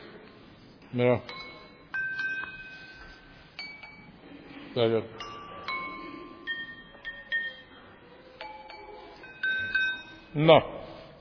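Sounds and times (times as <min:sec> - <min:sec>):
soft hiss: 0:00.0 - 0:11.1
speech: 0:00.9 - 0:01.5, 0:04.8 - 0:05.2, 0:10.3 - 0:10.8
empty drinking glasses tapped: 0:01.3 - 0:04.2, 0:05.2 - 0:07.8, 0:08.4 - 0:10.4.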